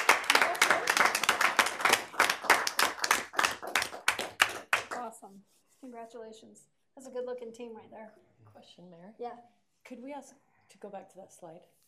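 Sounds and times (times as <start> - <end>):
audience applause in a council chamber: 0.0 - 4.9
speech: 6.1 - 11.8.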